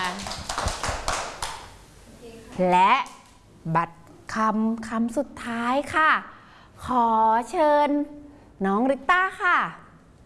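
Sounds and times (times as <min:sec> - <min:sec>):
children clapping in a classroom: 0:00.0 - 0:01.8
speech: 0:02.6 - 0:09.8.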